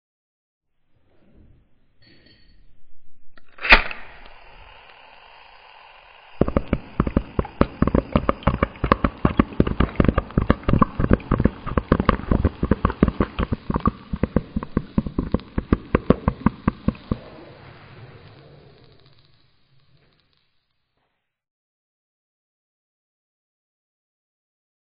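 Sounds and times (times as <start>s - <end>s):
bong: 6.4s - 17.3s.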